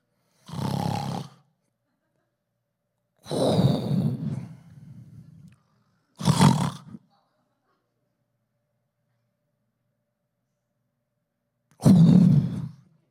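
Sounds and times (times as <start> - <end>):
loud snoring from sleep apnea: 0.4 - 1.4, 3.2 - 4.6, 6.2 - 7.0, 11.8 - 12.8.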